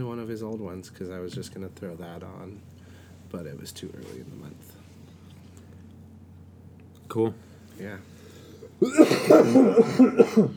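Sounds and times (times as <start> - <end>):
speech: 0.0 - 4.8, 7.1 - 8.1, 8.8 - 10.5
coughing: 8.8 - 10.5
throat clearing: 8.8 - 10.5.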